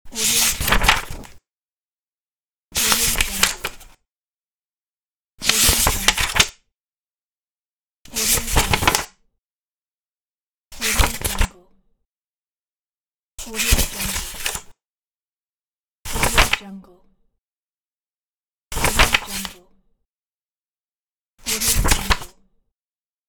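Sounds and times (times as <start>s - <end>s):
page turning: 0.3s - 1.4s, 3.0s - 3.9s, 5.5s - 6.5s, 8.4s - 9.1s, 11.0s - 11.5s, 16.1s - 16.6s, 18.8s - 19.6s, 21.6s - 22.3s.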